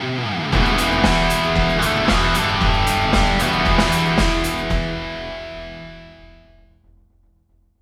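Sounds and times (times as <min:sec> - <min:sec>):
musical stinger: 0:00.6 - 0:06.3.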